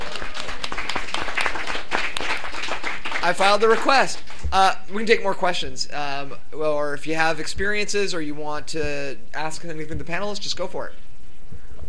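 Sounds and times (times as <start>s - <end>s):
crowd applauding: 0.0s - 4.5s
speech: 3.3s - 11.0s.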